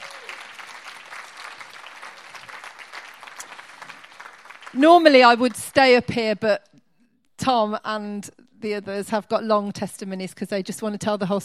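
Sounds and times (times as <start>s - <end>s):
audience applause: 0.0s - 5.7s
speech: 4.7s - 6.7s, 7.4s - 11.4s.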